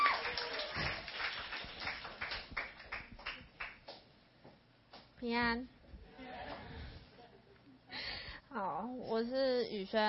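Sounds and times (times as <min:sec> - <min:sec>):
audience clapping: 0:00.0 - 0:04.1
speech: 0:05.2 - 0:05.8, 0:08.5 - 0:10.0.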